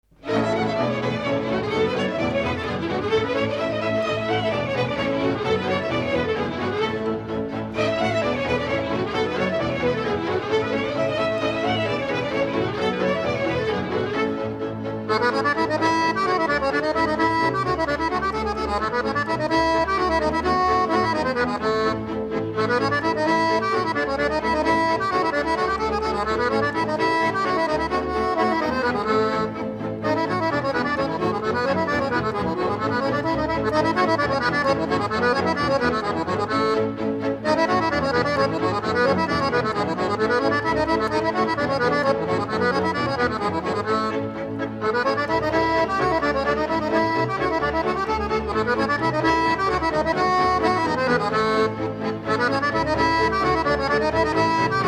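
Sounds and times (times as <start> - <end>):
accordion: 0.0 - 54.8.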